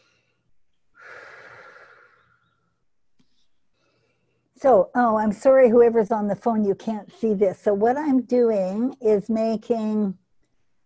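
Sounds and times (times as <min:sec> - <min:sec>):
person breathing out loud: 0:01.0 - 0:02.6
speech: 0:04.6 - 0:10.2.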